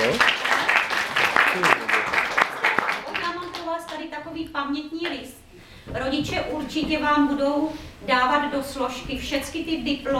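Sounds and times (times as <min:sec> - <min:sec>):
audience applause: 0:00.0 - 0:04.0
speech: 0:06.2 - 0:10.1.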